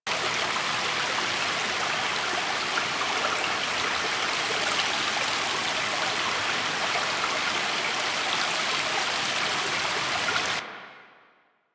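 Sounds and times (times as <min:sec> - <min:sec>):
stream flowing at a camp: 0:00.1 - 0:10.6.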